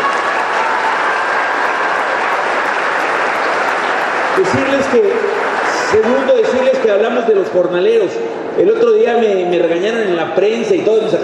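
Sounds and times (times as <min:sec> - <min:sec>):
audience applause: 0:00.0 - 0:07.3
speech: 0:04.5 - 0:05.3, 0:05.9 - 0:11.2.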